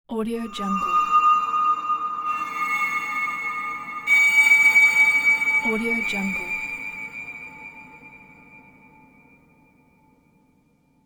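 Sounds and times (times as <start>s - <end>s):
space whistle: 0.4s - 9.0s.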